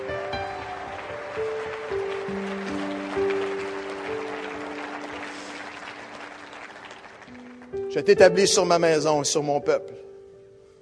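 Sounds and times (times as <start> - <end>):
crowd clapping: 0.0 - 8.4
speech: 8.0 - 10.0.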